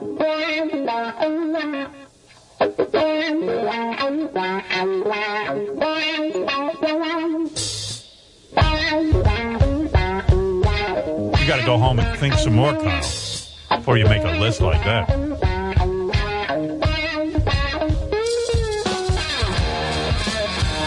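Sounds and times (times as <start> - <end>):
distorted electric guitar riff: 0.0 - 20.8
speech: 11.6 - 13.2, 13.9 - 15.3.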